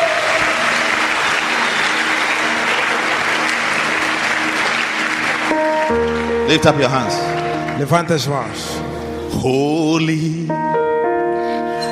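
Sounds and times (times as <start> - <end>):
church congregation clapping at a service: 0.0 - 8.9
speech: 5.9 - 10.9.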